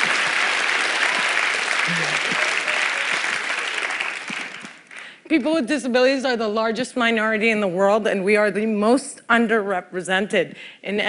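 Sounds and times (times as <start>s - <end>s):
audience applause: 0.0s - 5.2s
speech: 1.9s - 2.5s, 5.3s - 11.0s.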